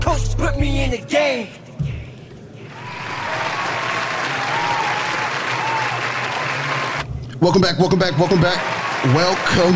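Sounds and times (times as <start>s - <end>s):
speech: 0.1s - 1.7s, 7.4s - 9.7s
canned applause from a soundboard: 2.7s - 7.0s, 8.0s - 9.7s
faint cheering: 2.7s - 7.0s, 8.3s - 9.7s.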